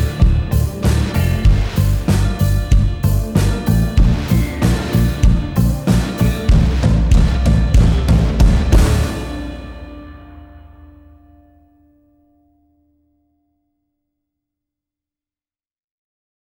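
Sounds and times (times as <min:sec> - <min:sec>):
modern vintage tension music: 0:00.0 - 0:12.1.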